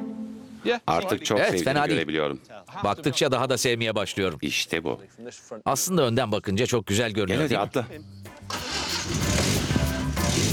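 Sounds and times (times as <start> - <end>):
speech: 0.6 - 8.3, 9.1 - 9.6
car engine starting: 8.4 - 10.5.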